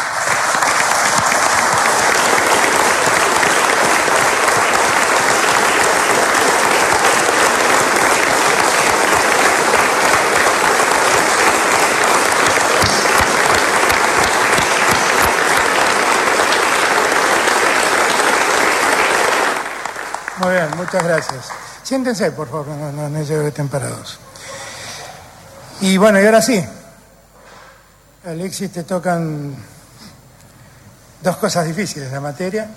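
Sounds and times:
audience applause: 0.0s - 21.8s
speech: 20.9s - 24.3s, 25.8s - 26.8s, 28.2s - 29.7s, 31.2s - 32.7s.

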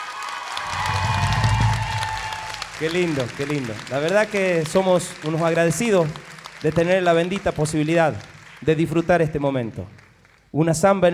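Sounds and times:
crowd voices and cheering: 0.0s - 8.5s
audience applause: 0.0s - 10.4s
speech: 2.8s - 11.1s.

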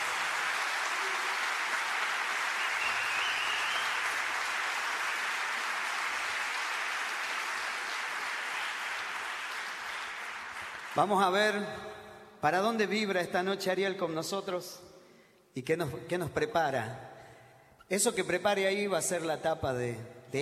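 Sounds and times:
crowd applause: 0.0s - 11.3s
speech: 11.0s - 14.9s, 15.6s - 17.1s, 17.9s - 20.4s.

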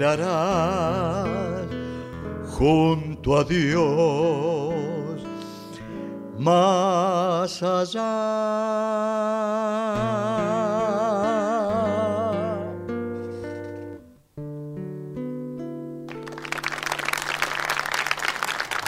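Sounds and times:
speech: 0.0s - 1.6s, 2.6s - 4.8s, 6.4s - 11.9s
person singing with vibrato: 0.0s - 12.9s
audience applause and ovation: 16.1s - 18.8s.

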